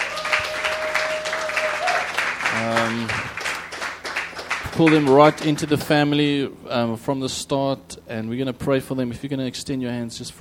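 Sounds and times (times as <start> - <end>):
church congregation applause welcoming visitors during a service: 0.0 - 5.8
speech: 2.6 - 3.4, 4.8 - 10.3.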